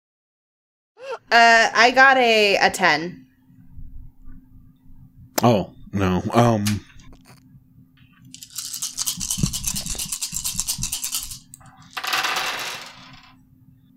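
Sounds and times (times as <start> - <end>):
speech: 1.3 - 3.2, 5.4 - 6.8
many dice being rolled: 8.4 - 13.4.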